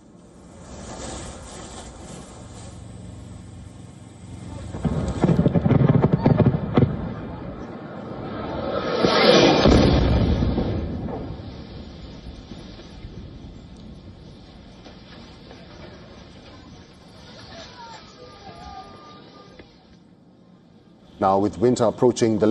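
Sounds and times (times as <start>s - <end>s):
drone strike explosion in city: 4.4s - 17.8s
speech: 21.2s - 22.4s.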